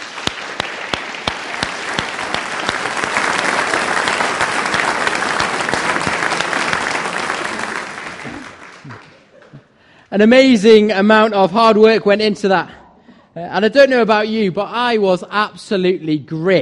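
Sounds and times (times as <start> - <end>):
audience applause: 0.0 - 9.7
speech: 10.1 - 12.8, 13.4 - 16.5.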